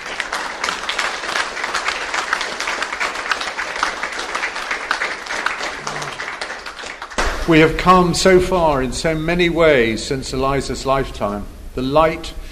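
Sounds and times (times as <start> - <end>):
crowd applauding: 0.0 - 7.9
speech: 7.5 - 12.4.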